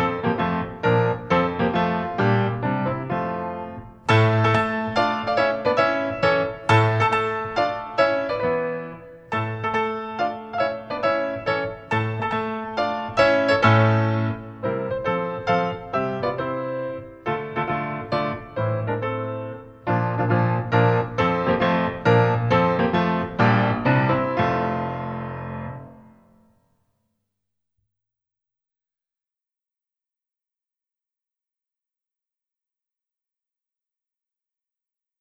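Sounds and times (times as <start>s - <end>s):
Polish mazurka and pas marché dance music: 0.0s - 25.2s.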